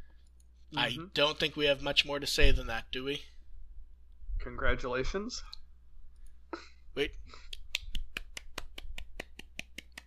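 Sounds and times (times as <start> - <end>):
speech: 0.7 - 3.3, 4.4 - 5.6, 6.5 - 7.5
soft hand clap: 7.5 - 10.0.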